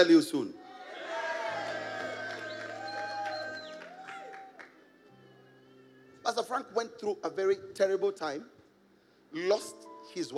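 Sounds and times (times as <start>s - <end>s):
speech: 0.0s - 0.6s, 6.3s - 8.6s, 9.3s - 10.3s
scattered cheers: 0.6s - 4.7s
audience clapping for pastors: 1.0s - 5.1s.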